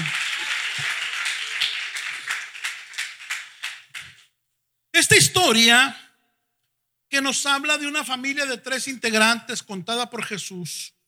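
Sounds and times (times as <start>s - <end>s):
audience applause: 0.0s - 4.2s
speech: 5.1s - 6.0s, 7.1s - 11.0s.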